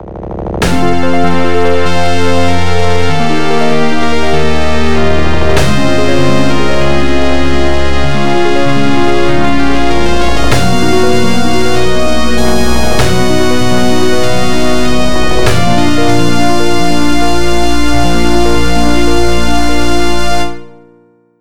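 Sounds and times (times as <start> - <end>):
fanfare: 0.6 - 20.9.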